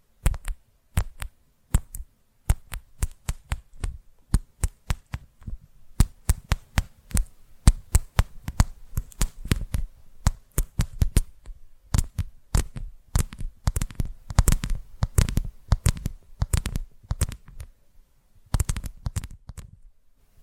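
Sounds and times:
sharp tapping clicks: 0.2s - 17.7s, 18.5s - 19.7s.

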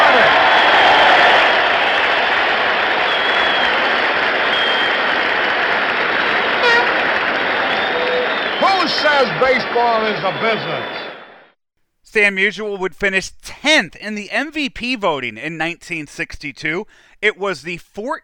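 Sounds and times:
whistles: 0.0s - 2.3s, 2.9s - 5.2s, 7.6s - 11.4s
stadium crowd standing ovation: 0.0s - 11.6s
speech: 9.2s - 11.0s, 12.1s - 18.2s.

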